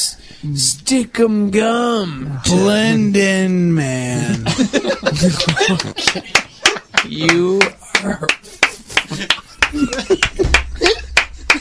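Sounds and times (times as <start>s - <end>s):
speech: 0.4s - 8.4s
person laughing: 4.2s - 7.1s, 7.9s - 11.5s
hand claps: 5.3s - 11.5s.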